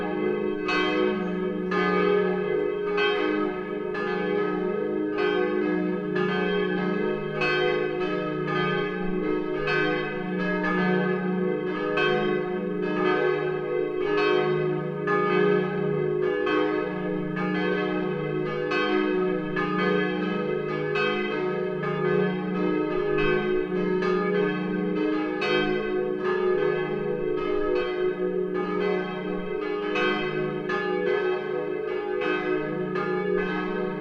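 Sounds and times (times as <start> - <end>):
Petrikirche church bells: 0.0 - 33.9.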